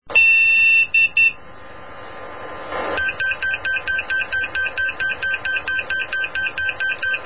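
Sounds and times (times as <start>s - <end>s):
beep: 0.2s - 1.4s, 3.0s - 7.2s.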